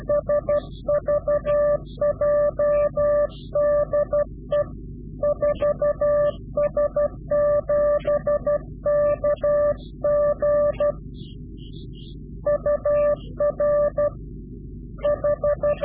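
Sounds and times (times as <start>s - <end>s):
Morse code CW directional call: 0.0s - 11.0s, 11.7s - 14.2s, 15.0s - 15.8s.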